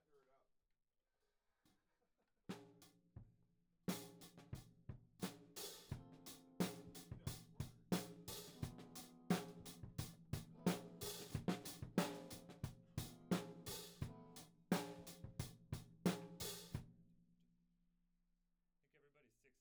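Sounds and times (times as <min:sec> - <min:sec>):
tom drum: 0:05.2 - 0:16.8.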